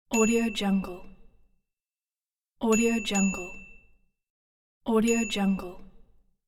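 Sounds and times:
bicycle bell: 2.7s - 4.1s, 5.1s - 5.6s.

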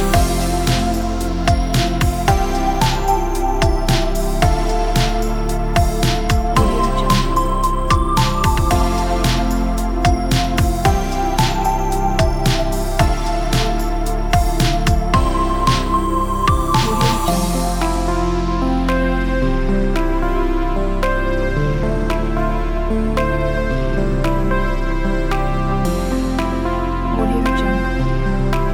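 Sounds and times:
dreamy 80s synth pop ballad: 0.0s - 28.7s.

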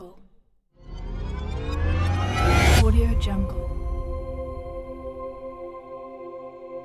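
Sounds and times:
logo impact hit: 0.9s - 5.6s.

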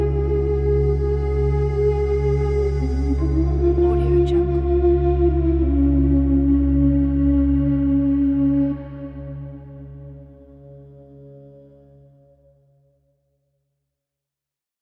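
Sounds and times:
Arabic ethnic music: 0.0s - 11.8s.

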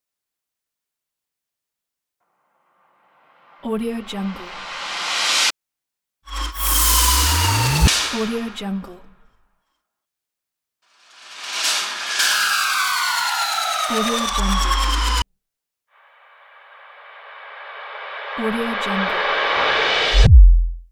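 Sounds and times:
epic rises: 3.2s - 5.5s, 6.3s - 8.6s, 11.0s - 15.2s, 16.3s - 20.8s.

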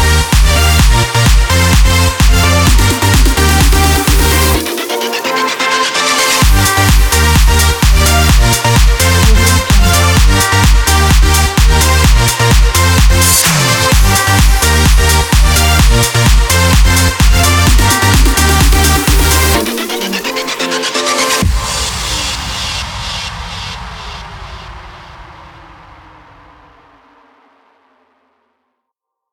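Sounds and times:
electronic dance music: 0.0s - 22.3s.

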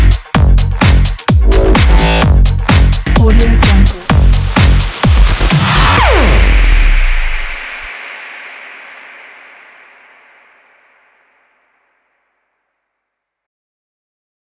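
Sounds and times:
modern EDM music: 0.0s - 8.0s.

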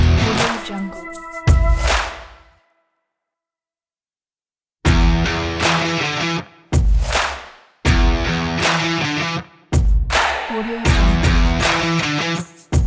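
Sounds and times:
sport rock music: 0.0s - 2.6s, 4.9s - 12.4s.

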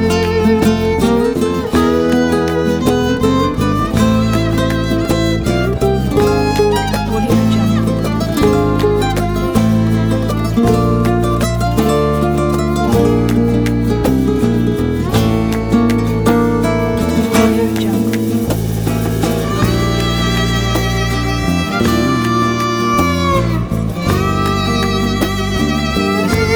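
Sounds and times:
emotional sentimental acoustic guitar and violin music: 0.0s - 26.5s.

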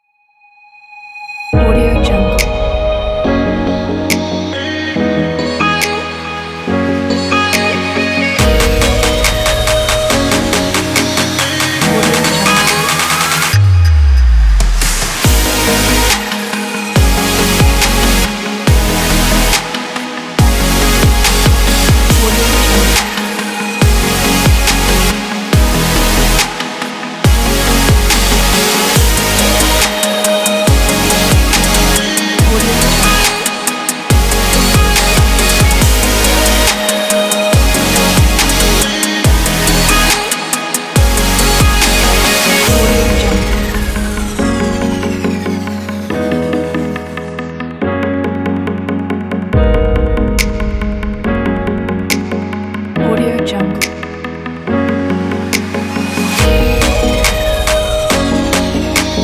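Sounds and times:
dubstep music: 1.6s - 59.2s.

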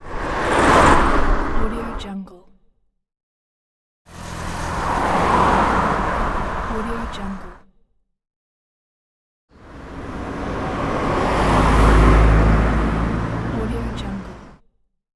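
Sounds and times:
car passing: 0.0s - 2.1s, 4.1s - 7.6s, 9.6s - 14.6s.

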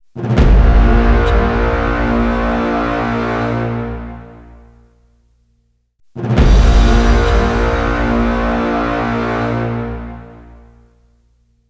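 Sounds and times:
horn: 0.1s - 5.1s, 6.2s - 11.5s.

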